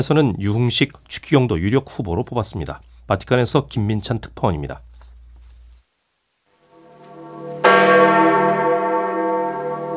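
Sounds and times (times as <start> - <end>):
speech: 0.0 - 4.9
church bells ringing at St. Peter's Basilica: 6.6 - 9.9.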